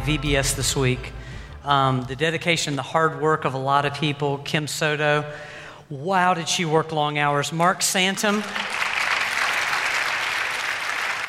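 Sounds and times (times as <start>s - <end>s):
speech: 0.0s - 8.8s
audience applause: 8.3s - 11.2s.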